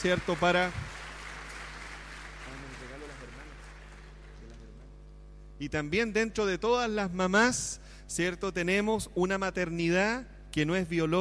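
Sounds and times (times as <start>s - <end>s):
speech: 0.0s - 0.8s, 5.6s - 11.1s
crowd applauding: 0.0s - 4.8s.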